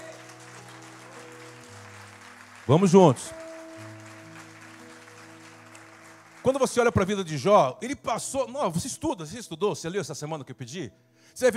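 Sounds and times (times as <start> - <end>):
audience applause: 0.0 - 7.6
speech: 2.7 - 3.4, 6.5 - 11.5.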